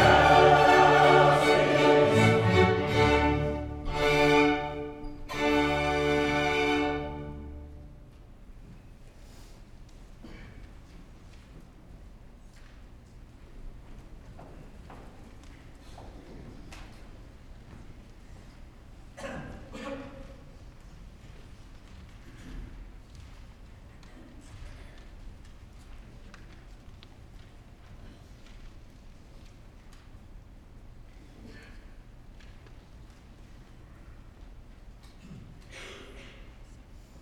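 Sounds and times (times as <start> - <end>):
chancel choir singing a Mass Sanctus: 0.0 - 7.8.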